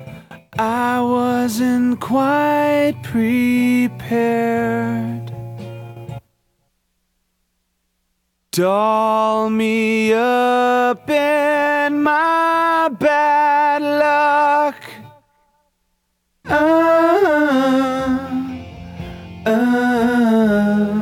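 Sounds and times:
person singing: 0:00.0 - 0:05.3, 0:08.6 - 0:15.3, 0:16.5 - 0:21.0.

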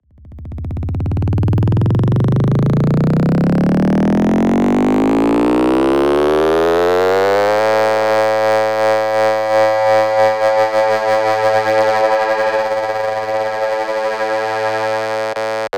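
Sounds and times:
bass: 0:00.0 - 0:15.6.

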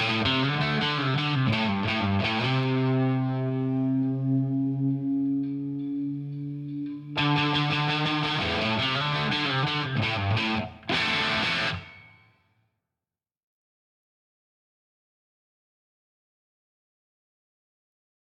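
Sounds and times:
guitar: 0:00.0 - 0:12.5.

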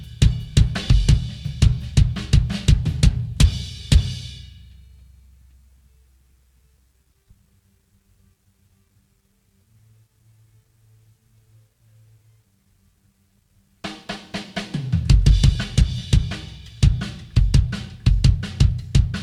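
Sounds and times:
drums: 0:00.0 - 0:06.0, 0:13.8 - 0:19.2.

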